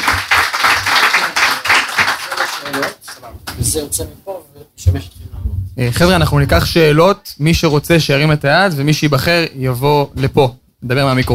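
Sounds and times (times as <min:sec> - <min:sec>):
audience applause: 0:00.0 - 0:03.2
speech: 0:03.7 - 0:05.2, 0:05.8 - 0:11.3.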